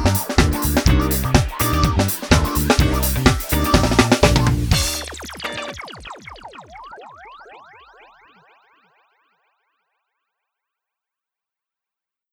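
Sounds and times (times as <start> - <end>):
dance music with drums: 0.0 - 6.5.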